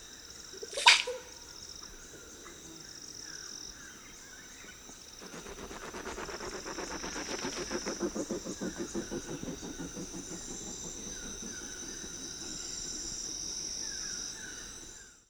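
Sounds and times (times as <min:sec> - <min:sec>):
bird song in a Costa Rican cloud forest: 0:00.8 - 0:15.2
male bird wings in flight in a Costa Rican cloud forest: 0:05.0 - 0:15.2.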